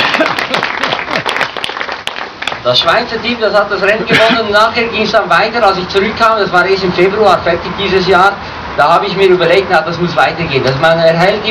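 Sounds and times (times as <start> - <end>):
applause for a team: 0.0 - 2.7
speech: 2.6 - 11.5.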